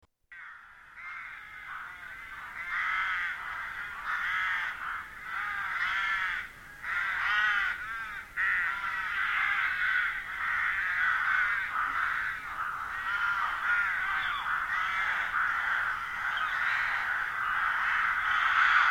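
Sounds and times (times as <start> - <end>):
crowd of birds calling with harsh cawing notes: 0.3 - 18.8.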